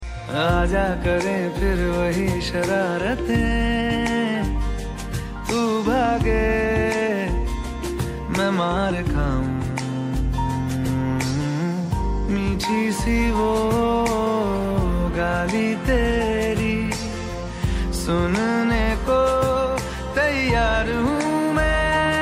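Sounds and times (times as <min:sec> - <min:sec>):
song: 0:00.0 - 0:22.2.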